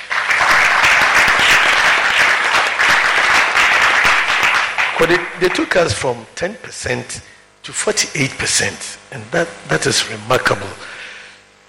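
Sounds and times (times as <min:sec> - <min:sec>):
crowd applause: 0:00.0 - 0:05.8
speech: 0:05.0 - 0:11.0.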